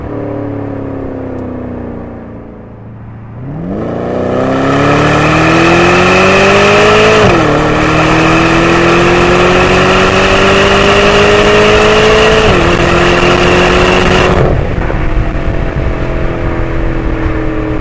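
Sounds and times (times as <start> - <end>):
Porsche Cayenne Turbo engine onboard: 0.0 - 17.7.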